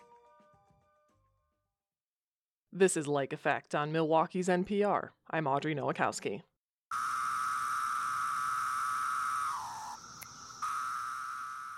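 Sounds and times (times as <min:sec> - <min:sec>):
speech: 0:02.8 - 0:07.1
periodical cicadas buzzing: 0:06.9 - 0:11.7.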